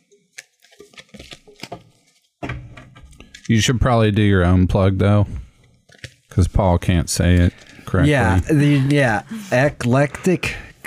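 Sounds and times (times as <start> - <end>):
deck of cards being shuffled and cut: 0.2 - 2.3, 7.2 - 9.1
speech: 3.5 - 5.4, 6.4 - 10.6.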